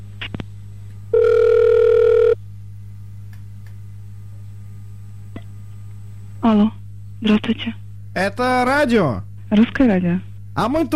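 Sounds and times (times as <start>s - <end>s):
telephone line tones: 1.1s - 2.4s
speech: 6.5s - 10.9s.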